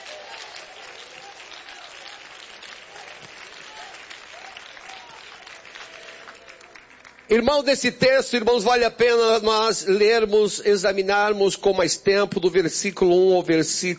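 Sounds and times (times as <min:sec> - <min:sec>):
audience applauding: 0:00.0 - 0:07.8
speech: 0:07.3 - 0:13.9.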